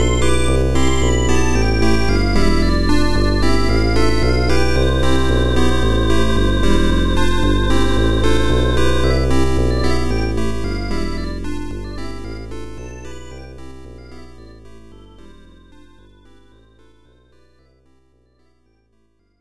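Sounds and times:
fun upbeat music: 0:00.0 - 0:14.9.

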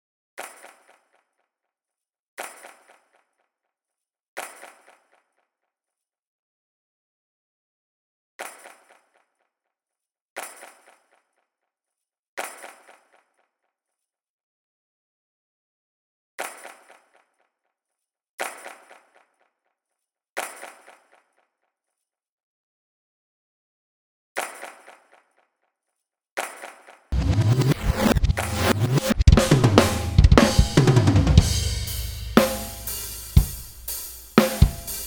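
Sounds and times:
drums: 0:27.2 - 0:35.0.

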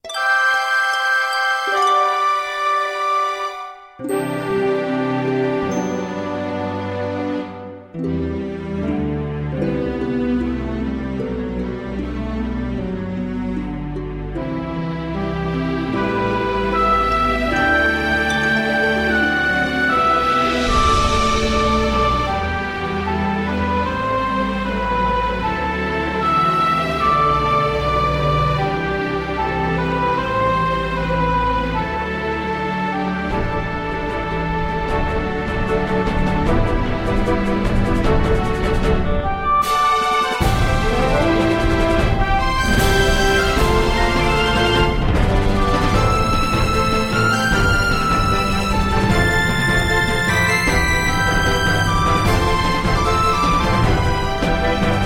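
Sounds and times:
opening background music: 0:00.0 - 0:55.0.

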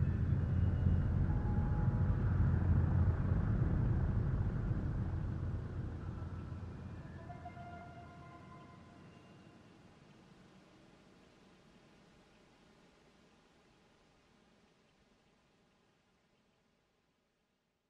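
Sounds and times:
tense encounter ambience: 0:00.0 - 0:09.3.

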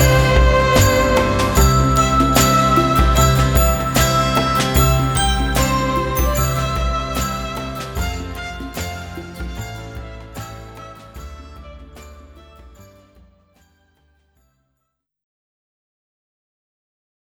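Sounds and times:
event background music: 0:00.0 - 0:13.2.

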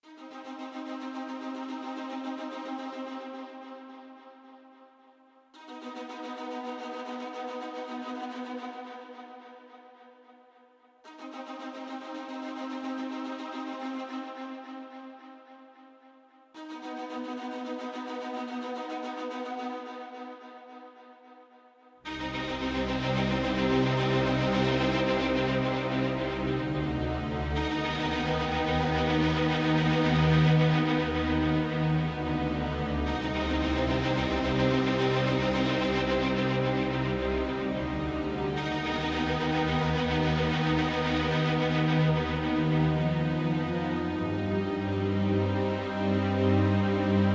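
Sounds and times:
strings: 0:00.0 - 0:04.6, 0:05.6 - 0:10.0, 0:11.0 - 0:15.8, 0:16.6 - 0:20.9, 0:22.0 - 0:47.3.

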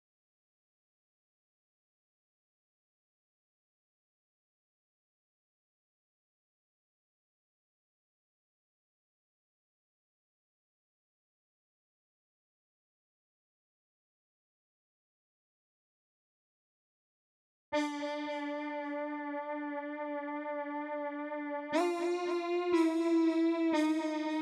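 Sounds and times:
synth leads: 0:17.8 - 0:24.4.

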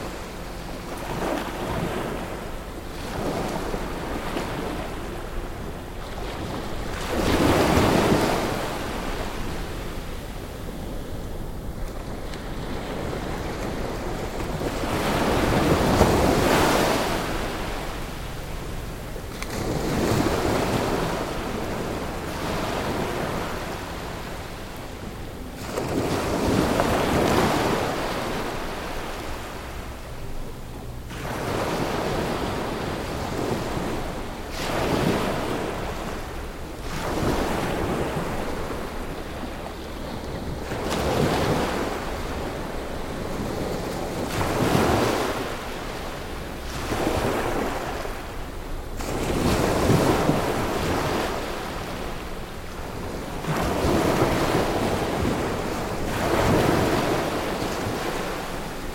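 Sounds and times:
calm beach: 0:00.0 - 0:58.9.

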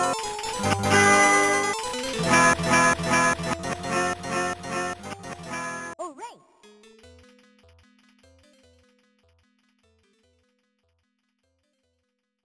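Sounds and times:
Spanish tavern ambience: 0:00.0 - 0:06.0.

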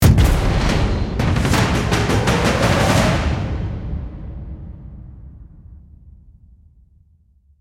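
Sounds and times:
user interface background music: 0:00.0 - 0:05.4.

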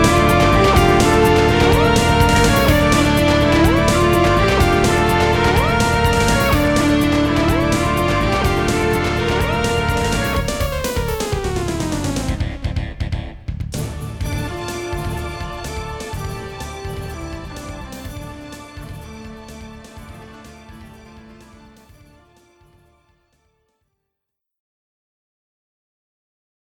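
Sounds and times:
intense fighting: 0:00.0 - 0:21.0.

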